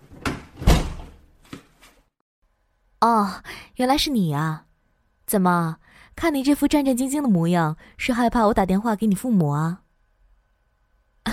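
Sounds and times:
door pushed shut with a loud low thud: 0.1s - 1.2s
speech: 3.0s - 4.7s, 5.3s - 9.8s.

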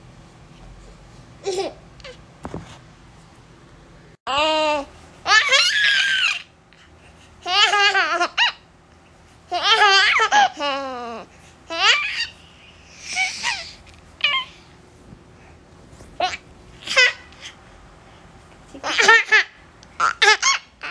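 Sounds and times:
baby laughing and babbling: 1.4s - 2.2s, 4.3s - 6.4s, 7.4s - 8.6s, 9.5s - 12.4s, 13.0s - 14.6s, 16.2s - 17.6s, 18.7s - 20.9s.

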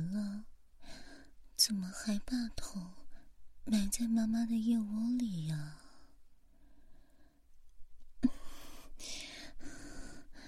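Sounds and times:
speech: 1.6s - 3.0s, 3.6s - 5.8s, 9.0s - 9.2s
child breathing in and out against a mother's armpit: 8.3s - 10.4s.

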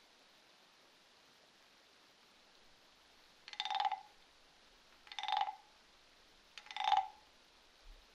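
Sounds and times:
frog croaks: 3.5s - 4.2s, 5.0s - 5.7s, 6.6s - 7.3s.

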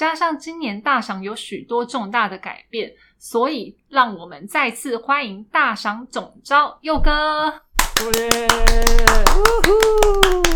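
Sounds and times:
speech: 0.0s - 10.5s
hand clapping: 7.8s - 10.5s.

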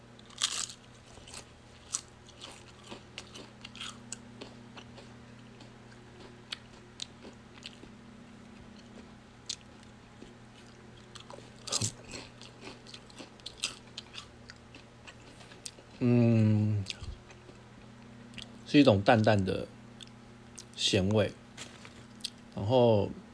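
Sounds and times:
low steady hum: 0.0s - 23.3s
biting and crunching of Lay's Classic Original potato chips: 0.2s - 7.9s, 8.8s - 16.0s
speech: 18.7s - 19.8s, 20.9s - 21.4s, 22.7s - 23.2s.

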